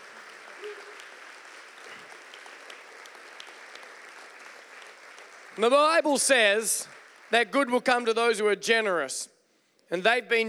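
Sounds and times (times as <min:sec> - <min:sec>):
audience applauding: 0:00.0 - 0:08.2
speech: 0:05.6 - 0:09.3, 0:09.9 - 0:10.4.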